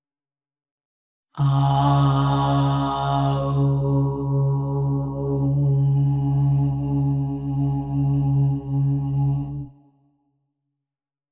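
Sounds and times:
OM tone at 136.1 Hz: 1.4 - 9.7.

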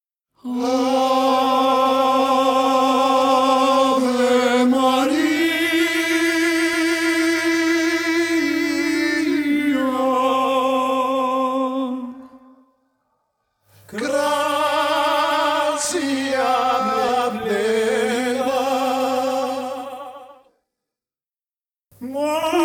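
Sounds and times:
person singing hymn: 0.4 - 12.6, 13.9 - 20.5, 22.0 - 22.6.

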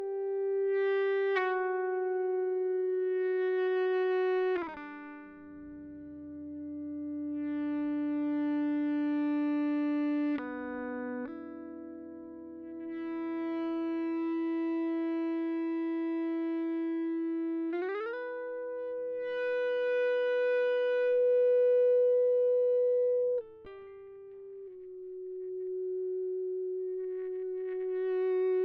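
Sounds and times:
dry ebow guitar: 0.0 - 28.6.

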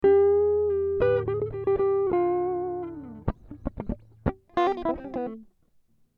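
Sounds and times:
guitar riffs in D minor at 100 BPM: 0.0 - 5.5.

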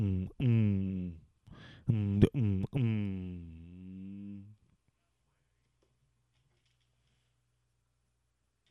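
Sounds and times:
vocal beatbox: 0.0 - 1.2, 1.9 - 4.5.

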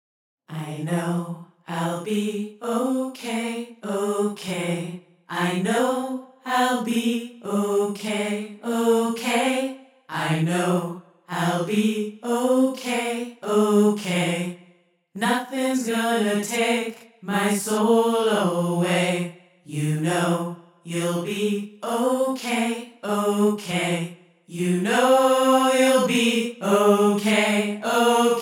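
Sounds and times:
person singing: 0.5 - 14.5, 15.2 - 28.4.

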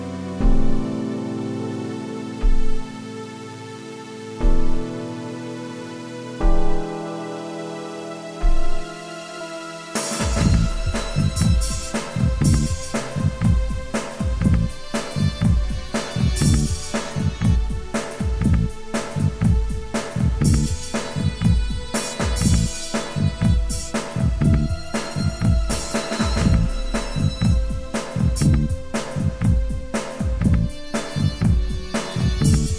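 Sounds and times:
soft synth groove in Am at 120: 0.0 - 32.7.

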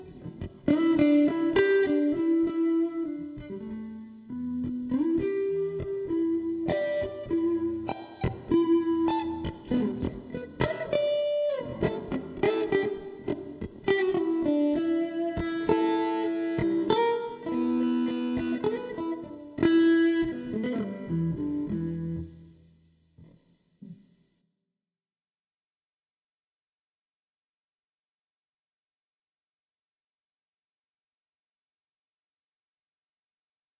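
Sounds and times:
guitar jam in E minor at 100 BPM: 0.0 - 24.3.

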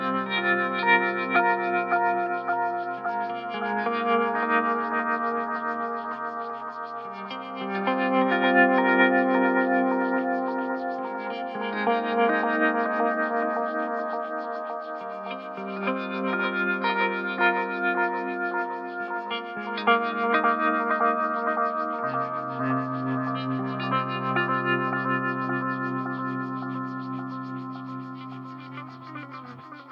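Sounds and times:
electric guitar solo chords: 0.0 - 29.8.

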